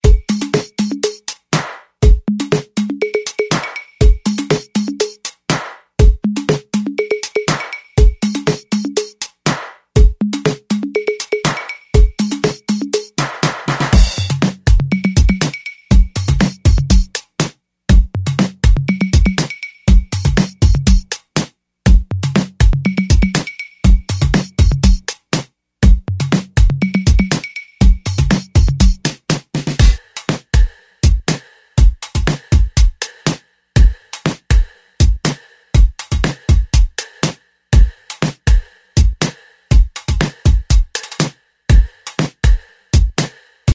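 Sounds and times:
drums: 0:00.0 - 0:43.7.

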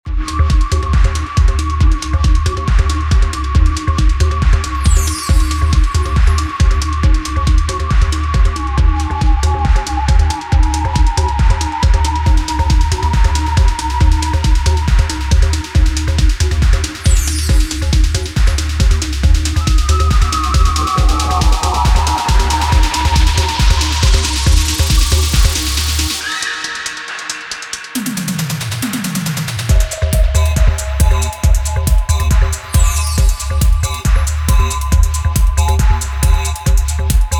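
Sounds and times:
drums: 0:00.1 - 0:37.3.

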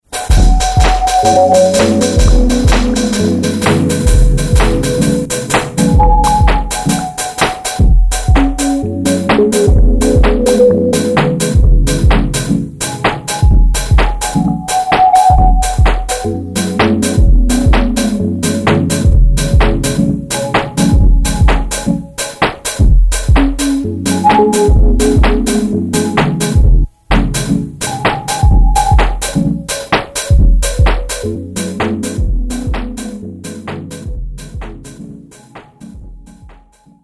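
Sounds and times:
hi-hats: 0:00.1 - 0:36.9
chords: 0:00.2 - 0:22.1, 0:23.3 - 0:26.9, 0:27.8 - 0:29.6
kick drum: 0:00.3 - 0:01.2, 0:02.2 - 0:03.1, 0:04.0 - 0:05.0, 0:05.7 - 0:07.0, 0:07.8 - 0:10.6, 0:11.2 - 0:14.4, 0:15.3 - 0:16.3, 0:17.2 - 0:18.1, 0:19.0 - 0:20.0, 0:20.6 - 0:22.0, 0:22.8 - 0:23.8, 0:24.7 - 0:25.7, 0:26.6 - 0:27.4, 0:28.4 - 0:29.4, 0:30.3 - 0:31.2, 0:32.2 - 0:33.0, 0:34.0 - 0:35.0, 0:35.8 - 0:37.0
claps: 0:35.6 - 0:35.8.

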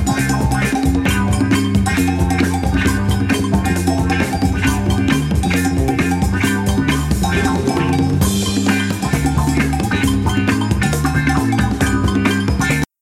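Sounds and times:
blues percussion soundtrack music: 0:00.0 - 0:12.9.

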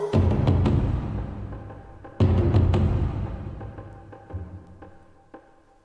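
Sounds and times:
battle drums: 0:00.1 - 0:04.4.

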